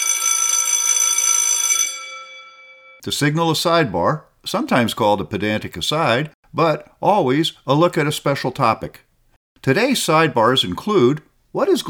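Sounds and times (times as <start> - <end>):
old-fashioned school bell ringing: 0.0 - 3.0
speech: 3.0 - 9.0, 9.6 - 11.8.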